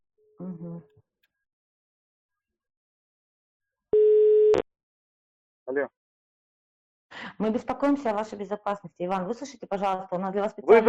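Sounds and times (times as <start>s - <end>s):
speech: 0.4s - 1.2s, 5.8s - 6.0s, 7.4s - 10.8s
telephone ringback tone: 4.0s - 4.6s.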